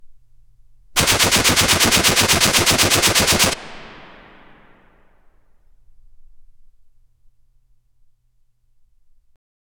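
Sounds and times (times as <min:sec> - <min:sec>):
weapon firing: 0:01.0 - 0:04.9.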